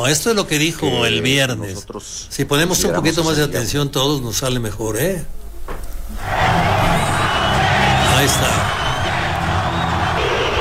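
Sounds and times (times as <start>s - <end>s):
speech: 0.0s - 6.4s, 8.2s - 8.8s
large crowd booing: 6.2s - 10.5s.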